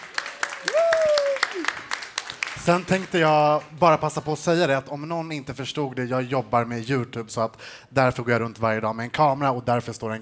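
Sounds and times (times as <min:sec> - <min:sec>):
audience applause: 0:00.0 - 0:03.7
speech: 0:02.6 - 0:10.1.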